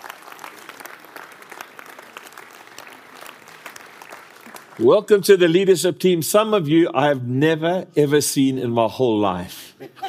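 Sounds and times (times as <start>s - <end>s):
audience applauding in church: 0.0s - 5.0s
speech: 4.8s - 10.0s.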